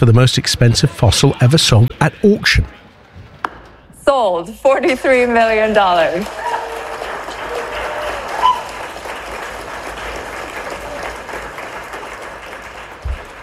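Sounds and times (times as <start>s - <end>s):
speech: 0.0s - 2.8s, 4.1s - 6.5s
enthusiastic clapping at an auction: 5.6s - 13.4s.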